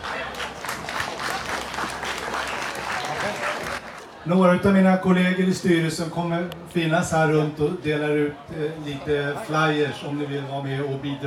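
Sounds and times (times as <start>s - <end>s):
audience applause: 0.0s - 4.1s
speech: 4.2s - 11.2s.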